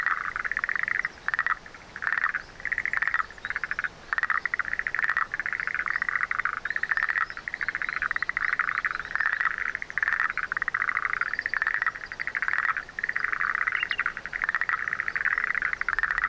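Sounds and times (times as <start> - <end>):
frog calling with pulsed rattling calls: 0.0 - 16.2.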